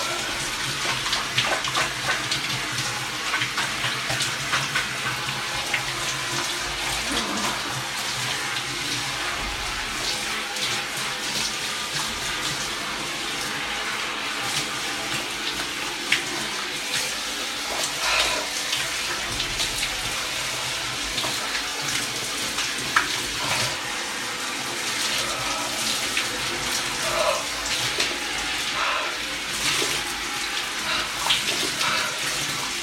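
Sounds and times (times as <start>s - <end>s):
cold shower water running: 0.0s - 32.8s
person moaning: 7.0s - 7.8s, 25.1s - 26.1s, 26.9s - 28.1s.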